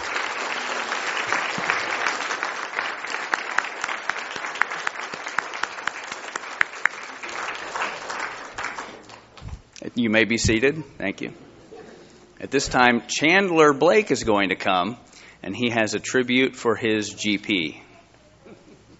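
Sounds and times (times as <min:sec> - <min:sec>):
audience applause: 0:00.0 - 0:09.4
speech: 0:10.0 - 0:11.5, 0:12.4 - 0:17.8.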